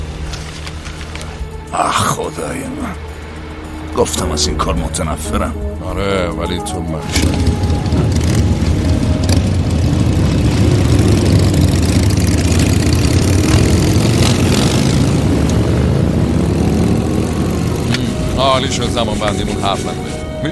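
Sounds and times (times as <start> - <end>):
speech: 1.7 - 3.1, 4.0 - 8.3, 18.6 - 20.5
Harley-Davidson motorcycle engine idling: 7.2 - 19.1.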